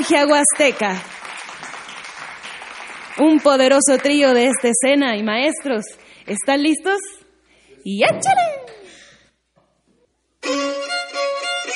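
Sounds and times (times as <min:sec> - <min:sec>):
speech: 0:00.0 - 0:01.2, 0:03.2 - 0:07.2, 0:07.8 - 0:08.6
concert audience applause: 0:00.0 - 0:04.6.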